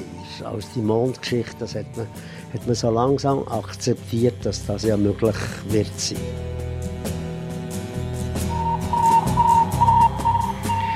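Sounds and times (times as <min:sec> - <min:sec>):
speech: 0:00.4 - 0:06.6
Sputnik satellite shortwave radio beep signal: 0:08.5 - 0:10.9.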